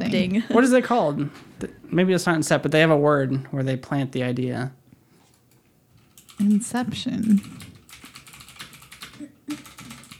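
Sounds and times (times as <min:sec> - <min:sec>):
speech: 0:00.1 - 0:04.8, 0:06.4 - 0:07.7
typing on a computer keyboard: 0:05.4 - 0:06.6, 0:07.2 - 0:10.1.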